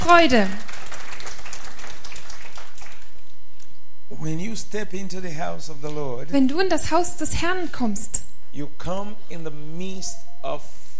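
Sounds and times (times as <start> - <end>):
congregation clapping hands during a church service: 0.0 - 3.7
speech: 0.1 - 0.7, 4.2 - 10.8.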